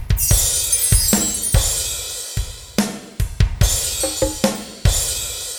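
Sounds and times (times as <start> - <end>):
ambient percussion: 0.2 - 2.4, 3.6 - 5.4.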